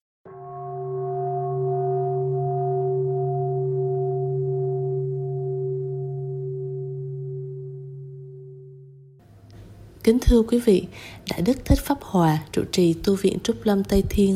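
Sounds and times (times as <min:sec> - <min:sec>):
temple bell ringing: 0:00.3 - 0:08.8
speech: 0:10.0 - 0:14.3.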